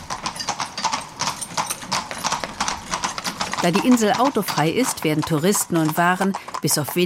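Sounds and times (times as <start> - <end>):
horse hooves clip-clopping: 0.0 - 7.0
speech: 3.6 - 7.0.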